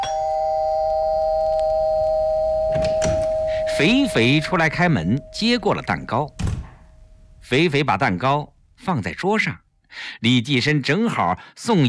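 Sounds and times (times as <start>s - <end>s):
doorbell ringing: 0.0s - 6.0s
speech: 3.8s - 6.4s, 7.5s - 11.8s.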